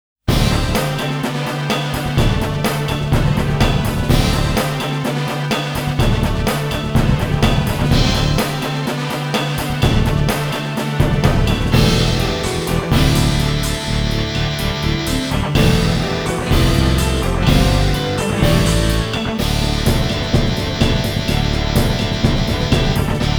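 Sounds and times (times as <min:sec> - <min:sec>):
ending background music: 0:00.3 - 0:23.3.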